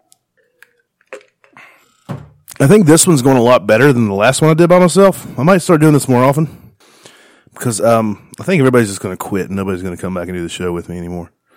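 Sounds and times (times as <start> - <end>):
person drinking water: 0.4 - 2.6
speech: 2.6 - 6.6, 7.6 - 11.4.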